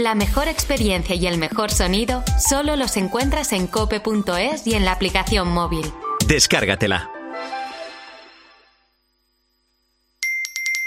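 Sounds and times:
speech: 0.0s - 7.1s
bright chime: 10.2s - 10.8s.

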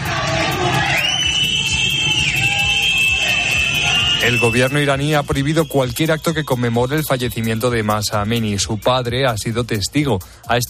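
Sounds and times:
protest crowd shouting in the street: 0.0s - 5.6s
high-pitched whistle or siren tone: 0.8s - 9.1s
speech: 4.3s - 10.6s.

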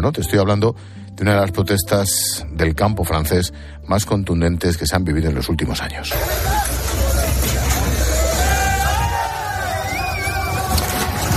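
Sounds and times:
speech: 0.0s - 7.6s
tractor overturning a truck with Spanish fruit and vegetables at protest: 6.1s - 11.3s.

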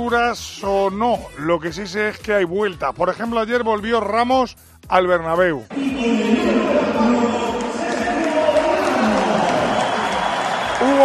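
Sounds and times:
speech: 0.0s - 7.5s
stadium crowd ovation for Ramos: 5.7s - 11.0s.

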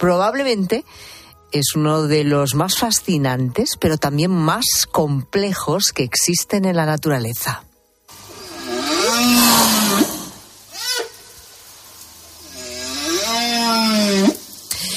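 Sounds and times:
speech: 0.0s - 7.7s, 9.2s - 10.1s
whale song: 8.3s - 11.3s, 12.4s - 14.8s.

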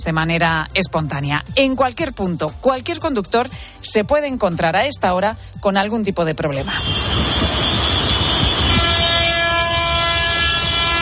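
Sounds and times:
speech: 0.0s - 7.6s
long column of tractors driving on a main avenue of Badajoz: 6.5s - 10.9s.

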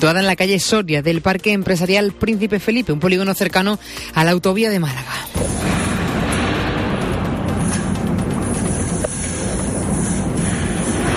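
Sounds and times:
speech: 0.0s - 5.8s
huge column of fire roaring as it burns an oil factory: 5.4s - 11.1s.

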